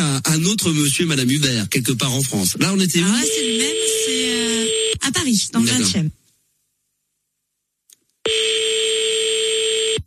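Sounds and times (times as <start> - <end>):
speech: 0.2 - 6.2
telephone ringing unanswered on a call: 3.2 - 5.0, 8.3 - 10.0.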